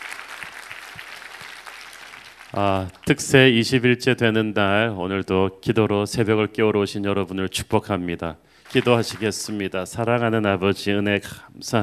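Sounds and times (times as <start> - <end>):
audience applause: 0.0 - 3.0, 8.6 - 9.7
speech: 2.6 - 11.8.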